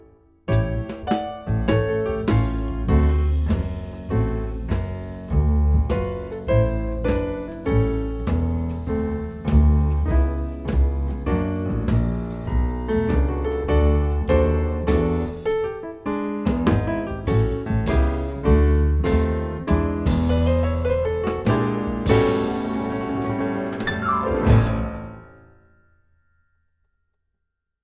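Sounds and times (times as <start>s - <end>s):
sliding semitone blues backing music: 0.5s - 15.8s, 16.4s - 25.2s.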